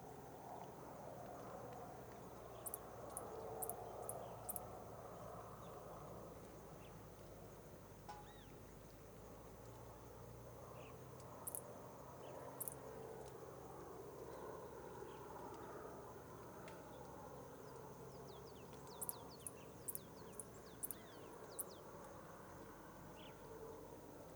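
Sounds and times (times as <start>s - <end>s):
cricket chirps at sunset: 0.0s - 24.3s.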